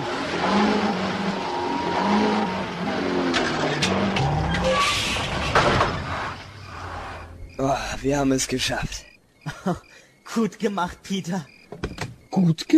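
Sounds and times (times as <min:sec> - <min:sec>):
car engine revving and accelerating while people push the car: 0:00.0 - 0:07.5
tires squealing: 0:00.0 - 0:07.6
speech: 0:08.0 - 0:12.7.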